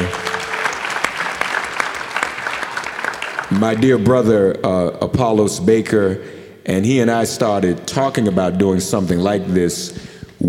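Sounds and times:
audience applause: 0.0s - 3.9s
speech: 3.5s - 10.4s.

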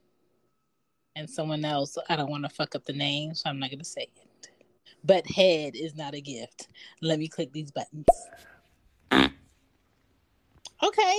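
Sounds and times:
speech: 1.2s - 4.3s, 5.0s - 8.5s, 10.8s - 11.1s
fart sound effect: 9.1s - 9.4s.

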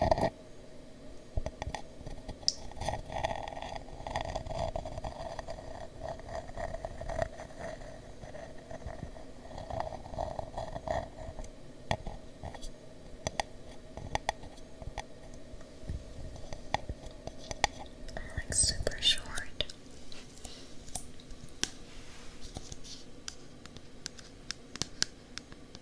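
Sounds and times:
steady low hum: 0.0s - 25.8s
ear scratching and scraping: 2.7s - 11.4s.

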